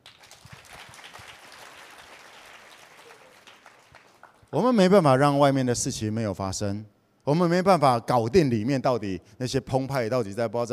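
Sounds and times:
audience applause: 0:00.0 - 0:04.4
speech: 0:04.5 - 0:10.7.

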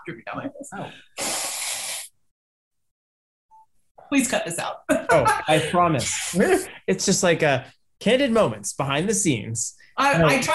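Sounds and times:
speech: 0:00.0 - 0:01.2, 0:04.1 - 0:10.5
nose blowing: 0:01.1 - 0:02.2
laughter: 0:04.9 - 0:06.7.

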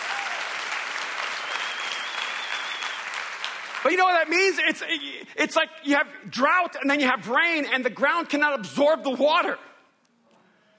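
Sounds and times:
audience applauding and cheering: 0:00.0 - 0:04.6
speech: 0:03.8 - 0:09.7.

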